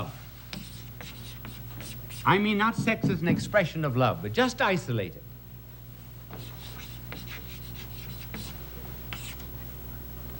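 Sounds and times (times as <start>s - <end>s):
pen drawing a circle on paper: 0.5s - 2.3s, 6.4s - 9.4s
speech: 2.2s - 5.2s.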